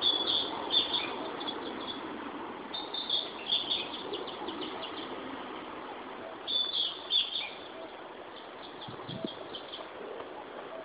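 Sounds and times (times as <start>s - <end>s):
Ficedula narcissina singing: 0.0s - 2.1s, 2.7s - 5.2s, 6.2s - 10.0s.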